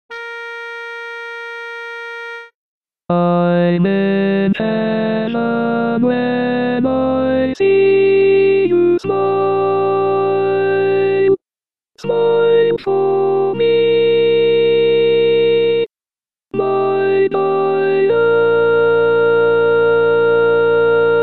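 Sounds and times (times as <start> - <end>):
barbershop tenor singing: 3.1 - 11.4, 12.0 - 15.9, 16.5 - 21.2.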